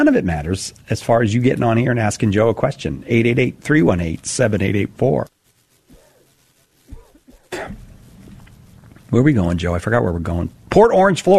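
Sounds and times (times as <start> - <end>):
speech: 0.0 - 5.4, 7.5 - 7.8, 9.1 - 11.3
heavy coughing: 6.9 - 7.9.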